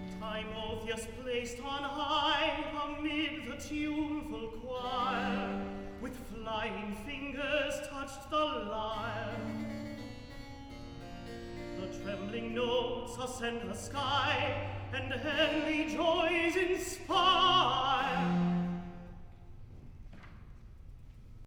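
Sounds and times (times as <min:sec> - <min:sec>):
person singing recitative: 0:00.1 - 0:09.7, 0:11.8 - 0:18.6.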